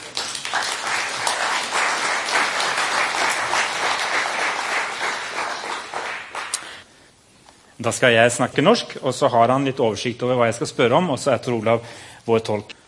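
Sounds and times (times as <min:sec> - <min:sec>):
audience applause: 0:00.0 - 0:06.8
speech: 0:07.8 - 0:12.8.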